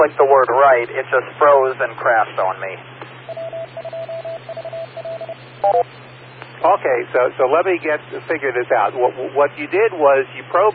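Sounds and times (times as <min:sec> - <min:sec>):
speech: 0:00.0 - 0:03.0, 0:05.6 - 0:06.0, 0:06.6 - 0:10.7
phone ringing: 0:03.3 - 0:05.8.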